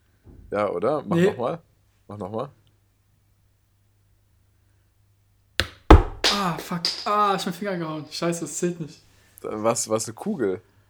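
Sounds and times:
speech: 0.5s - 2.6s, 6.4s - 10.7s
water bottle cap tapped or dropped: 5.6s - 7.2s.

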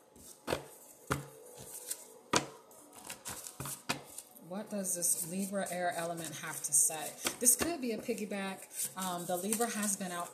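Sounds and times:
oracle cards tapping and clicking as drawn from a jar: 0.4s - 4.2s
speech: 4.5s - 10.3s.

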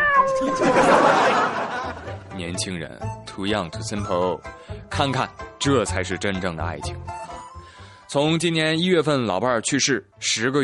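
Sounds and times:
cat meowing: 0.0s - 0.8s
laughter: 0.5s - 2.3s
speech: 2.4s - 7.2s, 8.1s - 10.6s.

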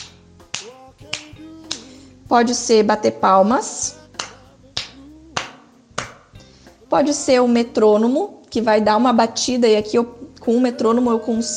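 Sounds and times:
finger snapping: 0.0s - 2.0s, 4.2s - 6.5s
speech: 2.3s - 4.0s, 6.9s - 11.5s.

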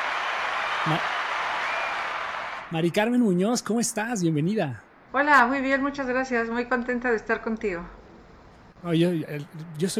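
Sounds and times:
applause welcoming a podcast guest: 0.0s - 2.7s
speech: 0.8s - 1.2s, 2.7s - 8.0s, 8.8s - 9.9s.

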